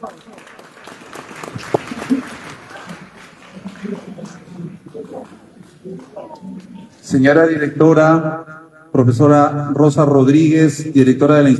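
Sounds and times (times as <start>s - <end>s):
speech: 0.0s - 1.0s, 7.1s - 11.5s
audience applause: 0.0s - 6.6s.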